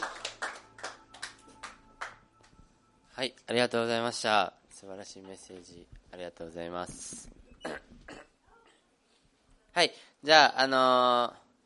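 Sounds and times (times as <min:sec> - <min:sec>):
group clapping in applause: 0:00.0 - 0:02.6
speech: 0:03.2 - 0:07.8, 0:09.8 - 0:11.4.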